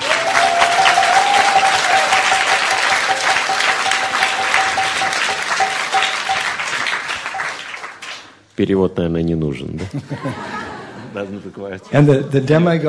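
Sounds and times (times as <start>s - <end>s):
audience applause: 0.0s - 8.4s
speech: 8.6s - 10.6s, 11.2s - 12.8s
laughter: 9.7s - 12.8s.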